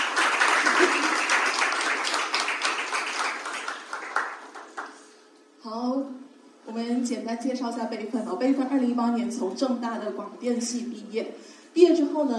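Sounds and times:
audience applause: 0.0s - 5.0s
speech: 7.0s - 12.3s.

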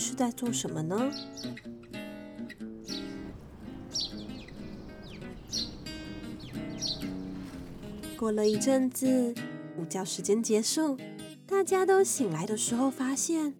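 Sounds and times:
speech: 0.1s - 1.8s, 8.2s - 13.5s
small birds chirping: 0.5s - 8.8s
steady sustained tonal background: 2.8s - 8.2s.

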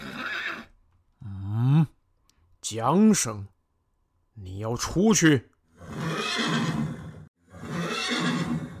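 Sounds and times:
horse neighing: 0.0s - 0.8s, 5.7s - 8.7s
speech: 2.7s - 3.5s, 4.4s - 6.5s.

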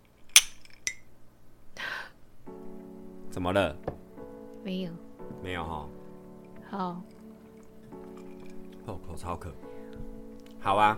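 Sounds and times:
glasses clinking in a toast: 0.3s - 1.1s
speech: 3.4s - 4.0s, 4.6s - 6.0s, 6.7s - 7.2s, 8.9s - 9.7s, 10.6s - 10.9s.

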